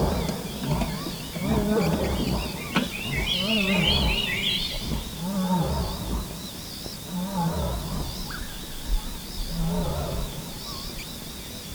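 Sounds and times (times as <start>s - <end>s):
lion grunting: 0.0s - 8.6s, 9.3s - 10.9s.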